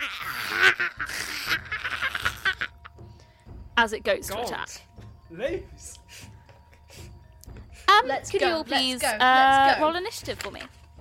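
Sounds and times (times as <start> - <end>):
voice imitating a creature's croaking: 0.0 - 2.8
speech: 3.8 - 5.8, 8.0 - 10.8.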